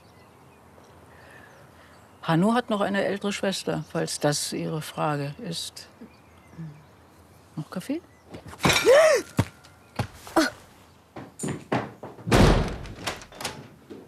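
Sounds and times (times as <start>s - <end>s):
speech: 2.2s - 6.8s, 7.6s - 9.3s
door slamming shut: 12.3s - 13.6s.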